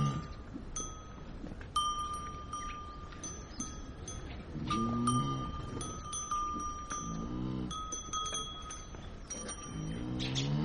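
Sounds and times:
cows mooing in a Tibetan family's courtyard: 0.0 - 0.4, 4.6 - 6.1, 6.9 - 8.0, 9.5 - 10.6
bright ringing tones like bells or chimes: 0.0 - 10.6
steady rustle: 0.0 - 10.6.

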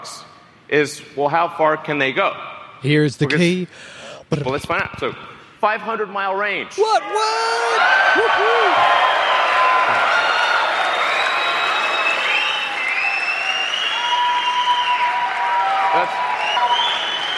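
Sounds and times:
speech: 0.7 - 9.1
crowd applause: 7.7 - 17.3.

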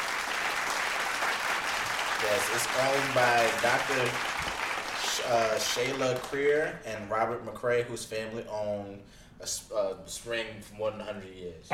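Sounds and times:
people clapping: 0.0 - 6.8
speech: 2.2 - 4.3, 5.2 - 11.7.

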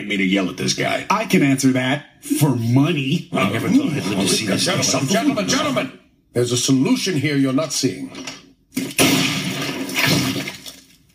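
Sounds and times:
speech: 0.0 - 9.4
laughter: 3.3 - 5.8
gooey bug brains hitting the desktop: 8.7 - 11.1
gunshot: 8.8 - 10.6.

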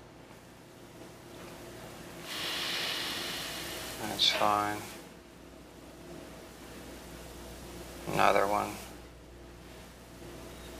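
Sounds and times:
slow deep breath in and out: 2.2 - 4.0
speech: 4.0 - 5.0, 8.1 - 8.8.

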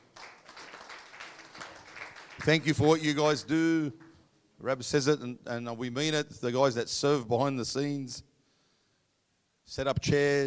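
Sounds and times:
audience applause: 0.0 - 3.0
speech: 2.4 - 4.0, 4.6 - 8.3, 9.7 - 10.4.

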